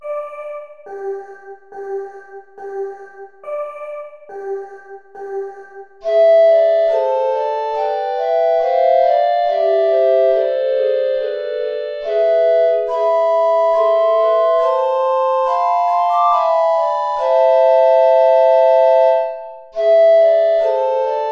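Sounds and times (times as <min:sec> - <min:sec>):
play-along backing track without bass recorder: 0:00.1 - 0:21.3.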